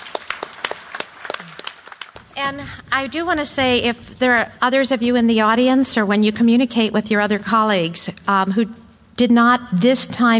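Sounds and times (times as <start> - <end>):
audience applause: 0.0 - 2.2
speech: 2.4 - 10.3.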